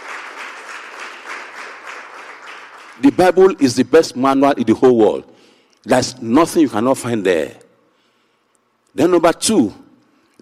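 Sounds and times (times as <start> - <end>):
crowd clapping: 0.0 - 3.7
speech: 3.0 - 7.6, 9.0 - 9.8.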